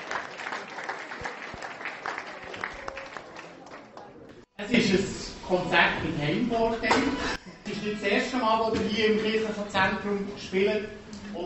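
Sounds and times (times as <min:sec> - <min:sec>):
audience applause in a reverberant room: 0:00.0 - 0:04.4
speech: 0:04.7 - 0:11.4.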